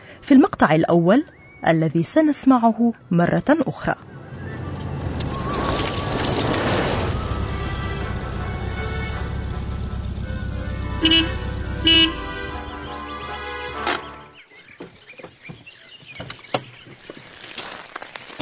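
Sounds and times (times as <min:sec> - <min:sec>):
speech: 0:00.3 - 0:04.1
car arriving in the countryside: 0:04.0 - 0:12.7.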